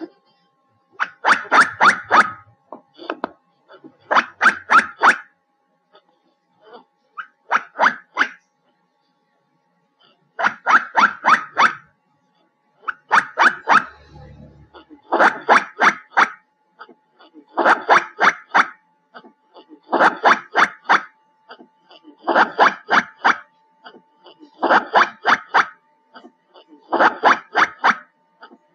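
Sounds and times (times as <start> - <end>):
black giant squirrel calls: 1.0 - 3.1, 4.0 - 5.3, 6.6 - 8.4, 10.4 - 11.9, 12.8 - 16.9, 17.5 - 28.6.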